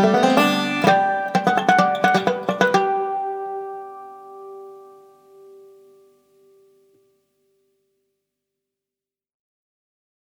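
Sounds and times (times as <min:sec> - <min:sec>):
banjo playing a polska: 0:00.0 - 0:06.6.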